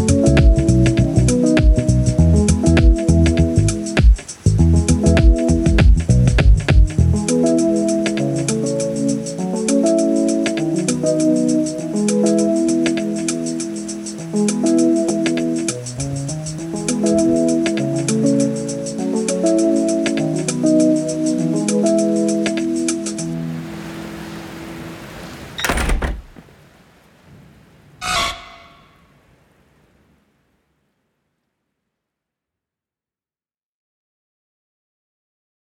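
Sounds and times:
lofi remix music: 0.0 - 23.4.

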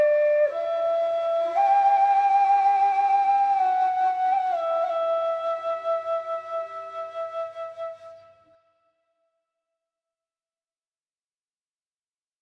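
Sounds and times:
bone flute: 0.0 - 9.0.

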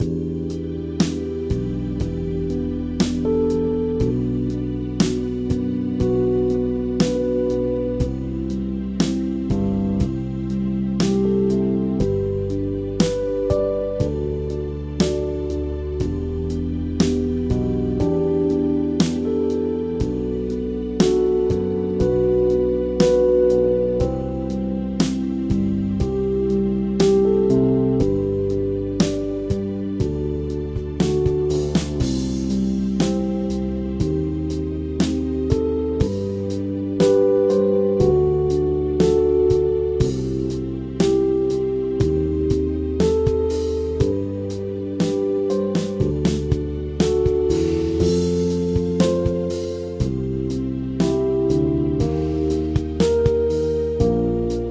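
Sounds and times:
generic sad music loop: 0.0 - 54.7.

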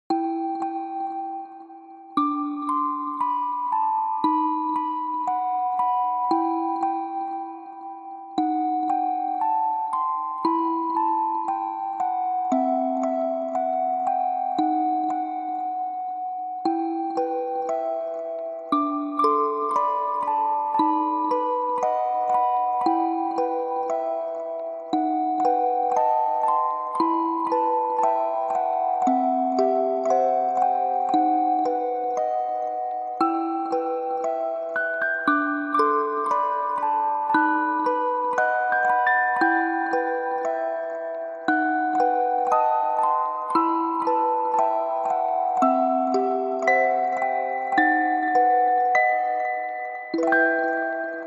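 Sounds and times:
music box: 0.1 - 51.2.

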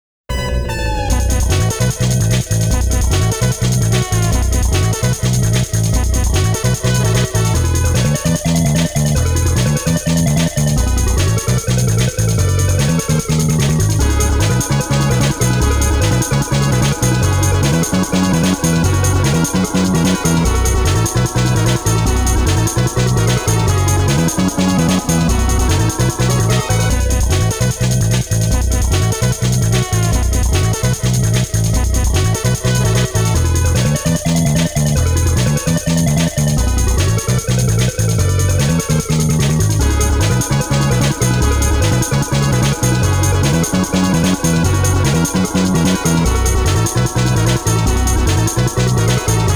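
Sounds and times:
bonus round background music: 0.3 - 49.5.

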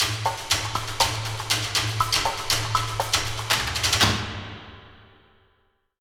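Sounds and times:
ghost forest combat intro music: 0.0 - 4.9.

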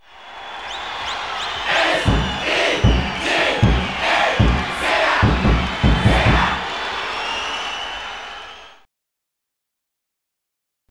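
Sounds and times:
chant: 1.4 - 7.0.

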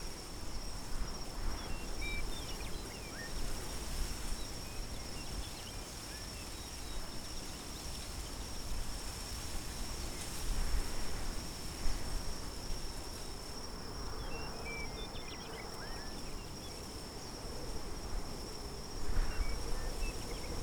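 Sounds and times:
teatime meadow ambience: 0.0 - 20.6.

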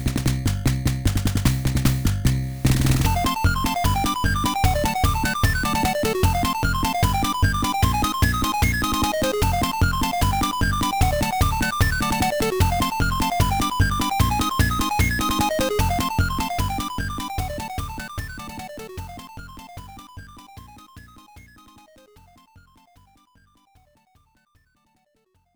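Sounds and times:
battle victory music: 0.1 - 19.3.

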